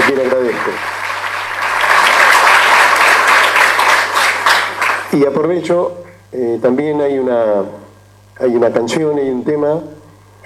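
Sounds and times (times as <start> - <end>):
crowd applause: 0.0 - 5.2
speech: 5.1 - 10.4.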